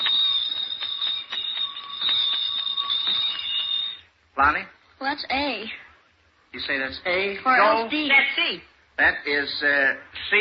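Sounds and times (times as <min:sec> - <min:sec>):
Christmas street bell ringing: 0:00.0 - 0:04.1
speech: 0:04.4 - 0:05.8, 0:06.5 - 0:10.3.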